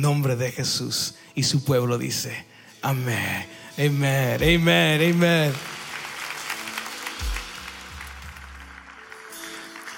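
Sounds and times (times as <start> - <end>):
speech: 0.0 - 5.8
audience applause: 4.5 - 9.9.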